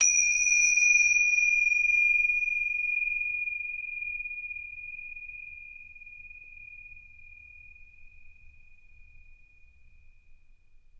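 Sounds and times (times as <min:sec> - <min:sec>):
Tibetan bell strike: 0:00.0 - 0:03.2.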